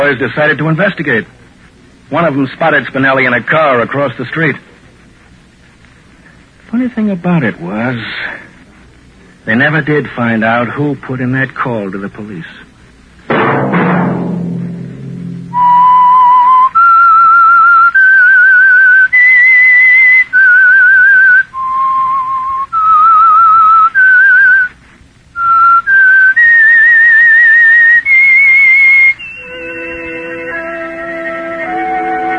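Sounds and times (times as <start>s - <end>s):
speech: 0.0s - 1.4s, 2.1s - 4.7s, 6.7s - 8.5s, 9.5s - 12.6s
low orchestral swell and instrumental chords: 13.3s - 16.4s, 29.4s - 32.3s
solo whistled theme melody: 15.5s - 24.7s, 25.4s - 32.3s.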